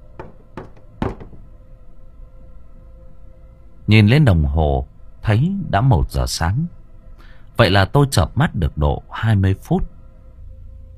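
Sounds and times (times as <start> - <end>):
sharp knocks on a door: 0.0 - 1.5
speech: 3.9 - 6.8, 7.6 - 9.9.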